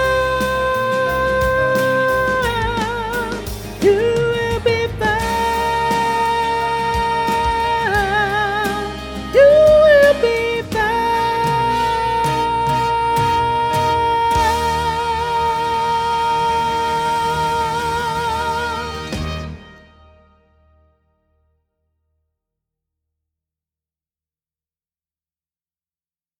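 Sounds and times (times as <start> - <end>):
soprano singing: 0.0 - 20.2.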